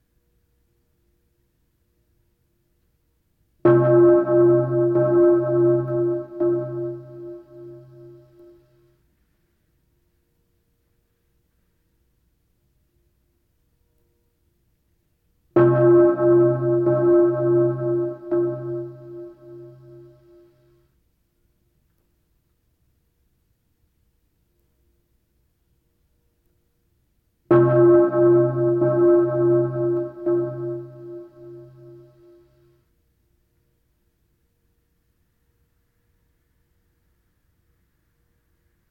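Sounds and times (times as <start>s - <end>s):
bells ringing: 3.7s - 8.5s, 15.6s - 20.2s, 27.5s - 32.2s.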